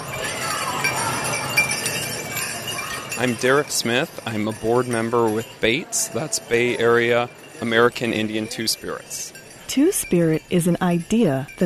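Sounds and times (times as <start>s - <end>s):
many small bells jingling on dance regalia: 0.0s - 11.6s
speech: 3.2s - 11.6s.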